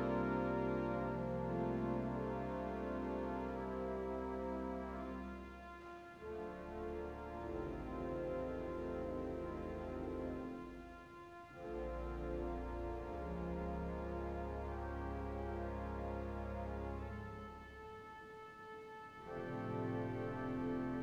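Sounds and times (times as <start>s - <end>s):
pipe organ with celestes, violes, clarinet and dulzian stops: 0.0s - 21.0s.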